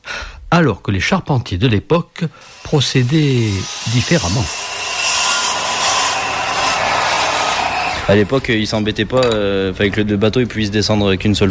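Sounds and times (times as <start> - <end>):
speech: 0.5 - 4.6, 8.1 - 11.4
hand saw cutting through a wooden plank: 2.4 - 8.3.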